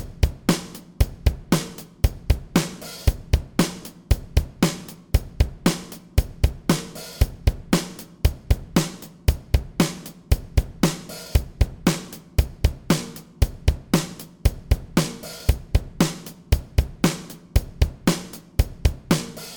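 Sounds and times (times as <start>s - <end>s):
bass: 0.0s - 19.5s.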